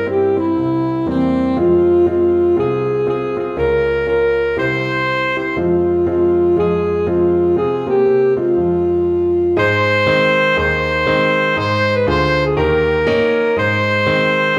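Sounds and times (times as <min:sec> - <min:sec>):
saxophone: 0:00.0 - 0:14.5.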